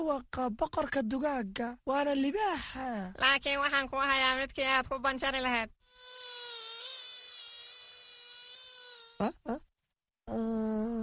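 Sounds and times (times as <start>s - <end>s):
speech: 0.1s - 6.2s, 9.2s - 9.7s, 10.3s - 10.7s
mosquito buzzing: 5.8s - 9.4s.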